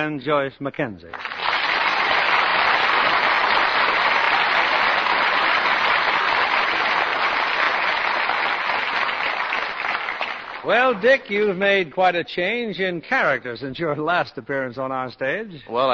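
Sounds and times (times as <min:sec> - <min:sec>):
speech: 0:00.0 - 0:01.3, 0:10.6 - 0:15.9
studio audience applause: 0:01.1 - 0:11.6.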